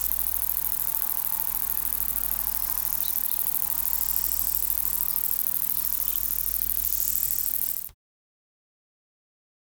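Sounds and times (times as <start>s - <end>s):
steady low hum: 0.0s - 6.8s
long-winged conehead song: 0.0s - 7.9s.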